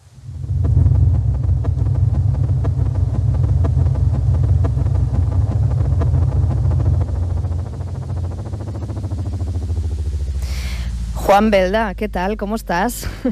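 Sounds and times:
sonified star oscillation frequencies sped up into a low rumbling drone: 0:00.0 - 0:13.3
speech: 0:11.3 - 0:13.3.

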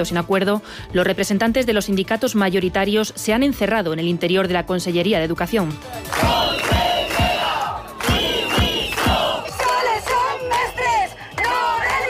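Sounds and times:
speech: 0:00.0 - 0:06.7
protesting teachers shouting outside: 0:06.1 - 0:12.0.

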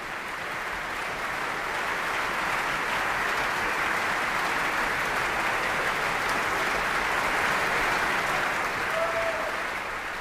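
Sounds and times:
audience applause after an opera at Bayreuth: 0:00.0 - 0:10.1.

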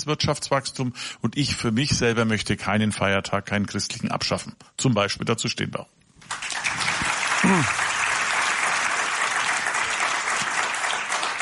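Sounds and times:
speech: 0:00.0 - 0:06.6, 0:07.4 - 0:07.8
audience applause: 0:06.2 - 0:11.4.

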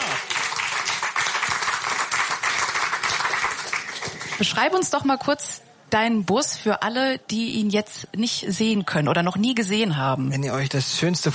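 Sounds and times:
audience applause: 0:00.0 - 0:04.6
speech: 0:04.4 - 0:11.3.

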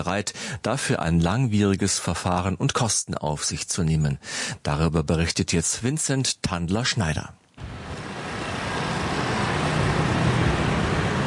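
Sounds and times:
speech: 0:00.0 - 0:07.8
morning rush hour city traffic in Brussels: 0:07.6 - 0:11.2.

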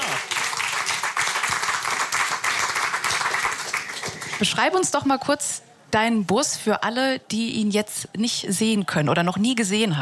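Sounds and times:
audience applause: 0:00.0 - 0:04.5
speech: 0:04.4 - 0:10.0.

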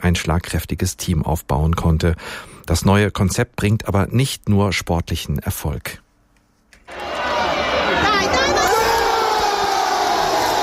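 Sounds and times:
speech: 0:00.1 - 0:06.0
football fans cheering a goal in the Fankurve: 0:06.9 - 0:10.6.

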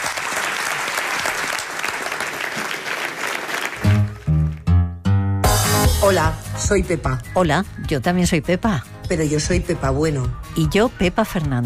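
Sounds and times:
audience applause: 0:00.0 - 0:04.7
speech: 0:06.1 - 0:11.6.

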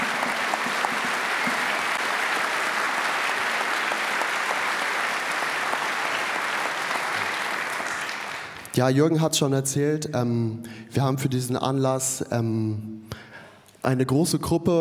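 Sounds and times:
audience applause: 0:00.0 - 0:08.8
speech: 0:08.8 - 0:13.2, 0:13.8 - 0:14.8.

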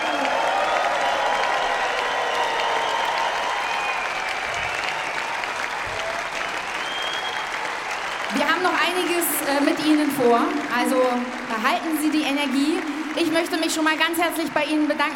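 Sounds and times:
faint cheering: 0:00.0 - 0:08.4
large audience applause: 0:00.0 - 0:15.1
speech: 0:09.3 - 0:15.1.

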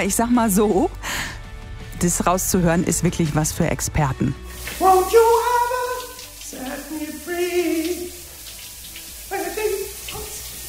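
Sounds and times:
speech: 0:00.0 - 0:01.3, 0:02.0 - 0:05.4
running shower water: 0:04.4 - 0:10.6
person singing in the shower: 0:04.7 - 0:08.2, 0:09.3 - 0:10.6.

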